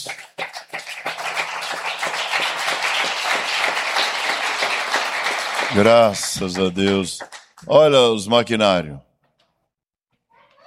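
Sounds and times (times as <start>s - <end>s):
audience applauding: 0.0s - 7.7s
speech: 5.7s - 9.1s.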